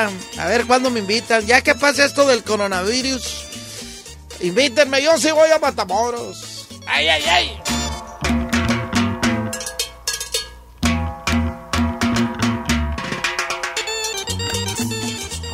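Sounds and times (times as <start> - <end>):
speech: 0.0 - 3.5, 4.4 - 8.4
upbeat organ music: 0.0 - 9.5, 13.8 - 15.5
sharp regular percussive hits: 7.5 - 15.4.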